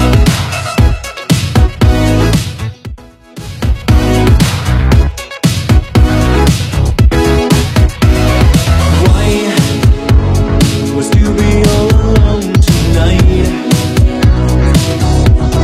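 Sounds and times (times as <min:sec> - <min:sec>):
80s retro Redrum drum machine beat: 0:00.0 - 0:15.6.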